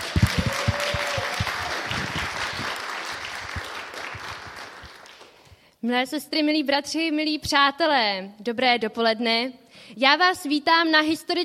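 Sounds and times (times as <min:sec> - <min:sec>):
audience applause welcoming the host: 0:00.0 - 0:05.4
speech: 0:05.8 - 0:11.4.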